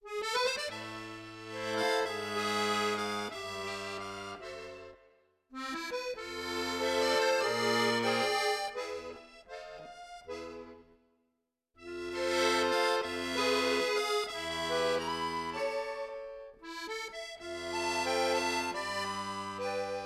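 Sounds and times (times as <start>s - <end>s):
accordion: 0.0s - 11.0s, 11.8s - 20.0s.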